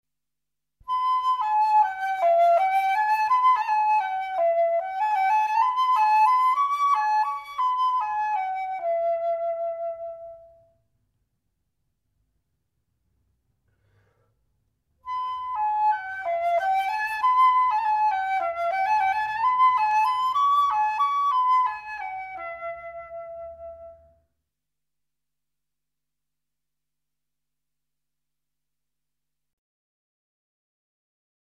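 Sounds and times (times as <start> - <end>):
transverse flute: 0.8 - 10.8, 15.0 - 24.3.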